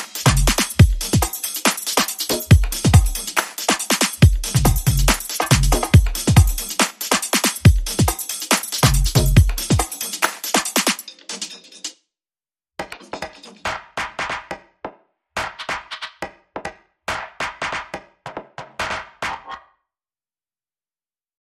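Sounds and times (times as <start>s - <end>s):
drums: 0.0s - 11.9s, 12.8s - 14.6s.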